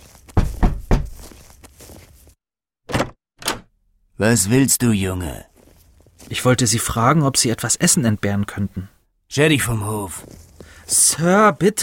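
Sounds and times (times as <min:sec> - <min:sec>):
knocking on a wooden house door: 0:00.4 - 0:01.2
speech: 0:04.2 - 0:05.5, 0:06.3 - 0:11.8.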